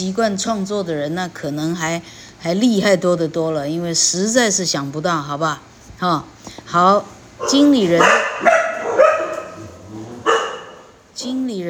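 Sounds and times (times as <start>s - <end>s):
speech: 0.0s - 8.3s
dog barking: 7.4s - 11.0s.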